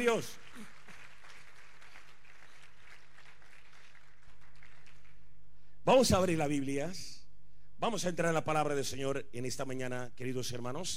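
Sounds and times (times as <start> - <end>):
speech: 0.0 - 0.5, 5.8 - 7.2, 7.8 - 10.9
audience applause: 0.0 - 5.2.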